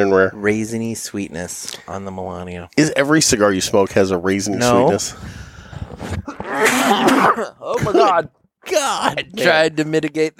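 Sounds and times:
speech: 0.0s - 6.2s, 6.9s - 10.3s
person sneezing into the microphone: 6.3s - 8.1s.

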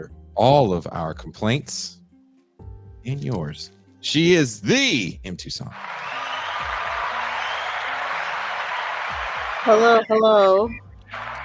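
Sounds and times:
speech: 0.0s - 2.0s, 3.0s - 6.2s, 9.6s - 11.4s
audience applause: 5.7s - 10.1s, 11.1s - 11.4s.

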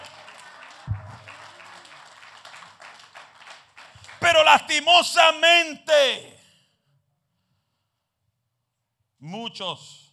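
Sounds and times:
audience applause: 0.0s - 4.7s
speech: 4.6s - 6.3s, 9.3s - 10.0s.

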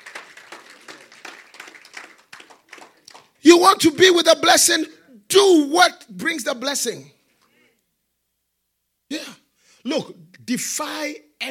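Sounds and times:
audience clapping: 0.0s - 3.4s
speech: 3.5s - 7.2s, 10.0s - 11.4s.

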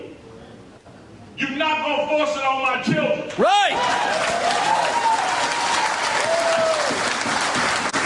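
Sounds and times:
speech: 1.4s - 4.8s
faint cheers and whistles: 3.7s - 7.2s
crowd applauding: 3.7s - 8.0s.

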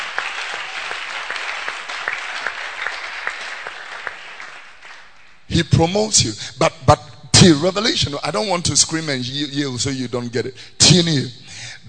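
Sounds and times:
audience clapping: 0.0s - 5.5s
speech: 5.6s - 11.8s.

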